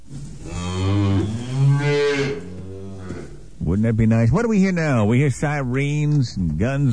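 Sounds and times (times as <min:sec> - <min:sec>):
cattle lowing in a field: 0:00.0 - 0:03.6
speech: 0:03.8 - 0:06.9.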